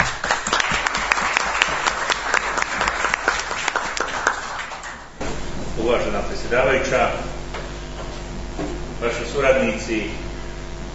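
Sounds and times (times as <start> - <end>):
audience applause welcoming the mayor of the municipality of Vareš: 0.0 - 5.1
speech: 5.9 - 7.3, 9.3 - 10.2.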